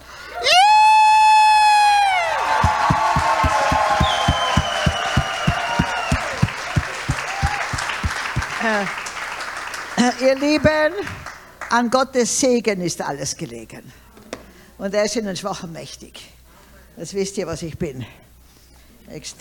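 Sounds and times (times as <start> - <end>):
whoops: 0.3 - 6.6
crowd cheering: 0.5 - 10.0
rhythmic clapping in unison: 2.5 - 11.0
speech: 10.3 - 14.0, 14.8 - 16.3, 17.0 - 18.2, 19.1 - 19.3.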